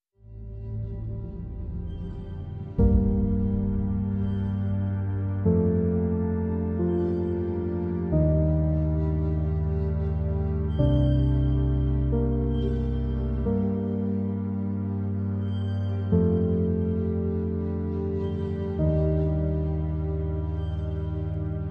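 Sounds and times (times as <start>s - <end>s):
dark sombre drone: 0.2s - 21.7s.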